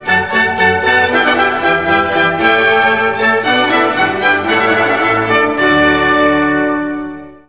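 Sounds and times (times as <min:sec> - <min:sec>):
music: 0:00.0 - 0:07.4.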